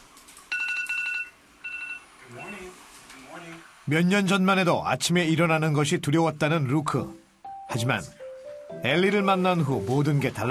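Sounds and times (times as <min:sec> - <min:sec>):
wake-up alarm ringing: 0:00.5 - 0:02.7
speech: 0:02.3 - 0:08.2, 0:08.8 - 0:10.4.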